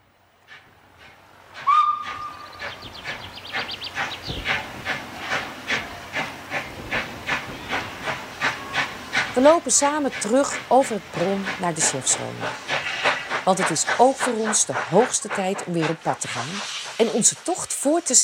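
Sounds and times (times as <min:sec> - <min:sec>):
steam tram departing: 0:00.0 - 0:18.2
steam tram whistle blast: 0:01.6 - 0:02.5
speech: 0:09.4 - 0:12.8, 0:13.5 - 0:18.2.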